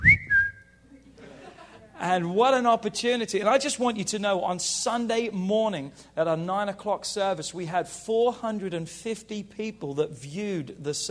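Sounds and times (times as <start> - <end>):
person whistling imitation of phone notification alert: 0.0 - 0.8
laughter: 0.9 - 2.1
speech: 2.0 - 11.1.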